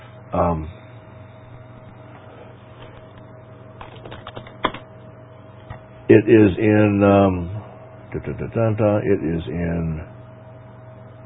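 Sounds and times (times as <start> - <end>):
speech: 0.3 - 0.8, 6.1 - 7.5, 8.1 - 10.1
typing on a computer keyboard: 3.8 - 4.8.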